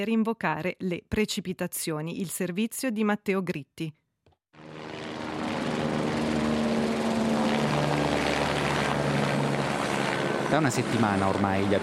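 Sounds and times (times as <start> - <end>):
speech: 0.0 - 4.0, 10.5 - 11.8
helicopter engines droning over Lake Maggiore during wildfires in Piedmont: 4.6 - 11.8.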